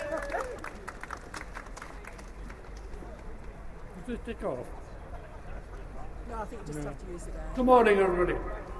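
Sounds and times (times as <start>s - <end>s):
crowd applause: 0.0s - 3.8s
speech: 4.1s - 4.8s, 6.3s - 8.7s.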